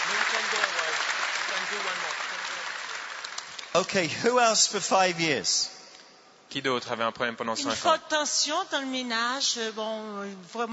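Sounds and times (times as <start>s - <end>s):
audience clapping applause: 0.0s - 4.4s
speech: 3.8s - 5.7s, 6.5s - 10.7s.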